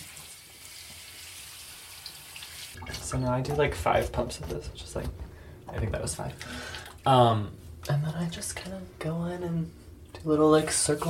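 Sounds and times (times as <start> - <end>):
tap water running at a sink while rinsing face: 0.0 - 7.2
faint splashes: 2.4 - 3.6
speech: 2.8 - 11.0.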